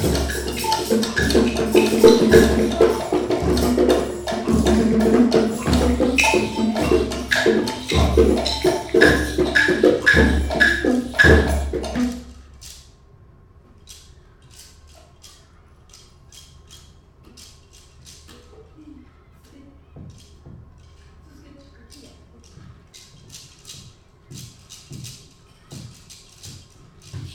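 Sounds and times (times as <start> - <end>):
elementary school drum club playing drums: 0.0 - 12.5.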